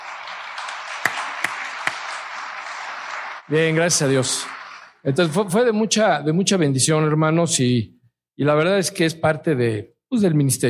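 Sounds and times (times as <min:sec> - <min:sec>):
sharper louder claps: 0:00.0 - 0:05.0
audience applause: 0:00.0 - 0:05.4
speech: 0:03.5 - 0:10.6.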